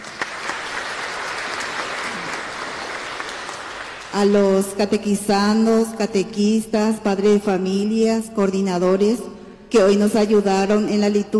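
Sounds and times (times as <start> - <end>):
audience applauding: 0.0 - 4.2
speech: 4.1 - 11.3.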